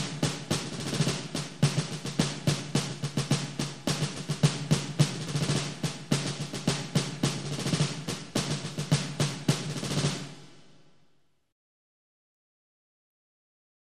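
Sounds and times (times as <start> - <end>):
marching drum: 0.0 - 10.7.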